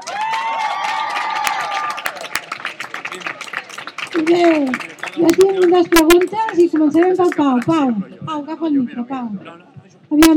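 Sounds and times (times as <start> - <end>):
crowd cheering and whooping for a youth choir: 0.0 - 2.5
crowd clapping for a youth choir: 0.0 - 7.2
speech: 4.2 - 10.3.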